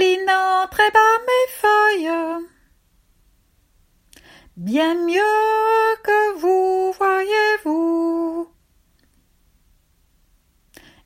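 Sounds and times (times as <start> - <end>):
person singing a second song verse in fragments: 0.0 - 2.6, 4.6 - 8.6.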